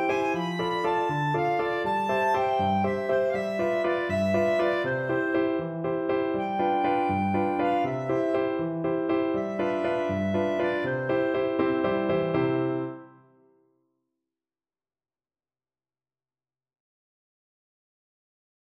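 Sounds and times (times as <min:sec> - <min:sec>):
clarinet: 0:00.0 - 0:13.2.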